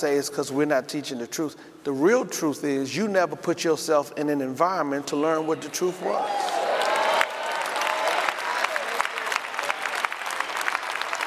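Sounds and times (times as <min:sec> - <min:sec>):
speech: 0:00.0 - 0:06.6
audience clapping: 0:06.3 - 0:11.2.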